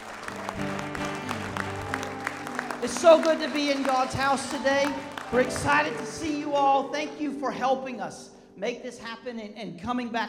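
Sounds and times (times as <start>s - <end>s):
congregation clapping in a Sunday church service: 0.0s - 7.2s
speech: 2.8s - 10.2s.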